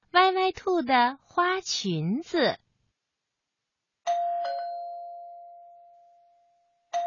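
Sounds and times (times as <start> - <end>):
speech: 0.4 - 2.6
ding-dong doorbell: 4.1 - 7.0.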